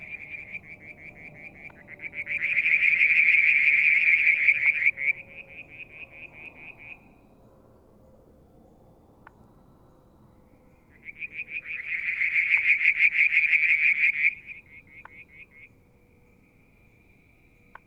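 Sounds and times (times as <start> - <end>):
frogs in a loud pulsed trill: 0.0 - 7.4, 9.2 - 17.8.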